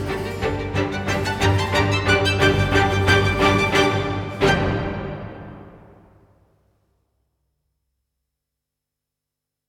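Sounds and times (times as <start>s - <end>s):
basses of a virtuoso Baroque violin concerto opening: 0.0s - 6.1s.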